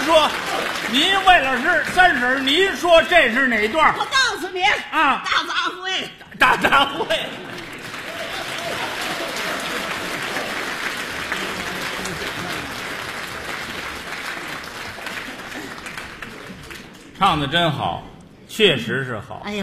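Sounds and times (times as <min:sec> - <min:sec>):
audience applause at a Beijing variety show: 0:00.0 - 0:03.8, 0:07.1 - 0:17.2
speech: 0:00.1 - 0:07.6, 0:17.2 - 0:19.6
laughter: 0:04.5 - 0:13.3.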